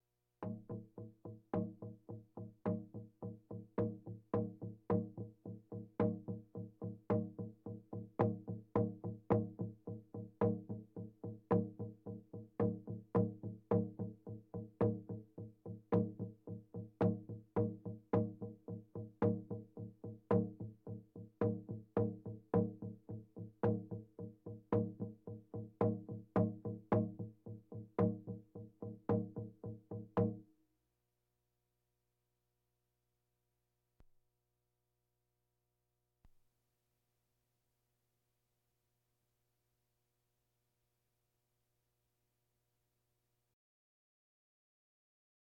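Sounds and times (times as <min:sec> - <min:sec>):
bongos: 0:00.4 - 0:30.4.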